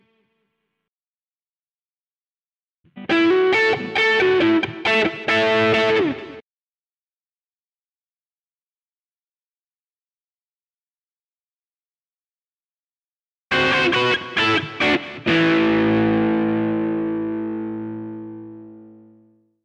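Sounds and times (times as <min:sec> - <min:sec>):
country rock music in A: 0:03.0 - 0:06.4, 0:13.5 - 0:18.9.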